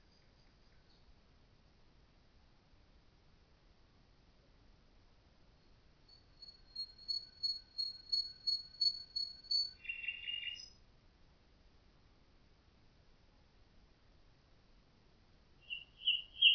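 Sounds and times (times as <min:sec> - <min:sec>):
common nightingale singing with whistled notes and fast rattling trill: 0:06.1 - 0:10.8, 0:15.6 - 0:16.5.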